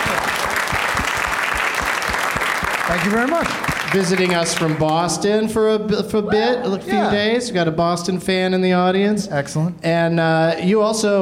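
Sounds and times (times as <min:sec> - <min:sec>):
audience applause welcoming a guest to a comedy show: 0:00.0 - 0:05.1
speech: 0:02.9 - 0:11.2.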